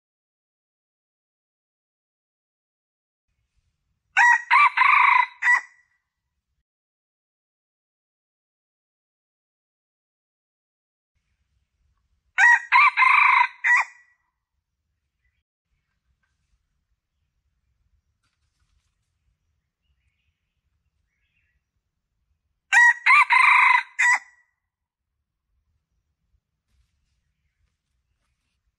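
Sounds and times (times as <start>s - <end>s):
Red junglefowl crowing: 4.2s - 5.8s, 12.4s - 14.0s, 22.7s - 24.4s.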